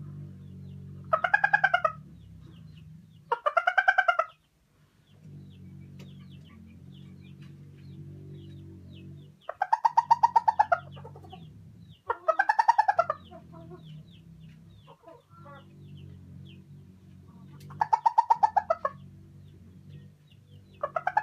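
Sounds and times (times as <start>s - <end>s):
Araucana hen cackling while laying an egg: 1.0s - 2.6s, 3.2s - 4.4s, 9.4s - 16.2s, 17.3s - 19.1s, 20.7s - 21.2s.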